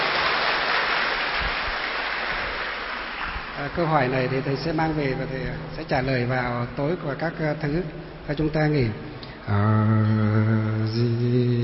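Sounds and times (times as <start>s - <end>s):
crowd applause: 0.0s - 5.1s
speech: 3.6s - 11.6s.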